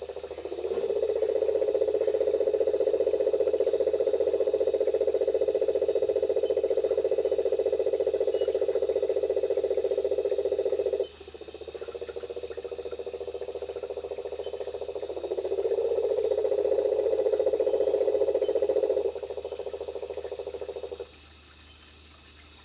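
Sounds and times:
marine toad Rhinella marina: 0.0s - 22.5s.

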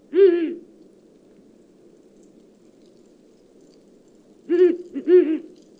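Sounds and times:
Ural owl Strix uralensis calling at night: 0.1s - 0.7s, 4.5s - 5.6s.

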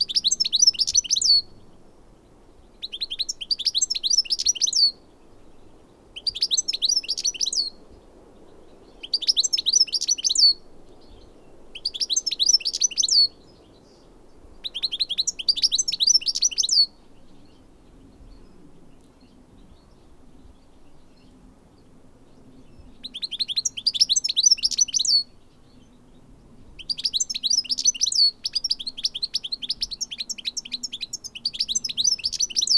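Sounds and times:
goldfinch Carduelis carduelis singing: 0.0s - 1.7s, 2.8s - 5.0s, 6.2s - 7.8s, 8.9s - 14.0s, 14.6s - 17.6s, 22.8s - 25.9s, 26.8s - 32.7s.

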